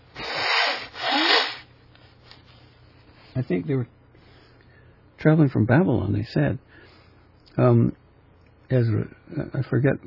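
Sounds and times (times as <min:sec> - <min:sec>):
nose blowing: 0:00.0 - 0:01.7
speech: 0:03.4 - 0:04.0, 0:05.2 - 0:06.9, 0:07.6 - 0:08.0, 0:08.7 - 0:10.0.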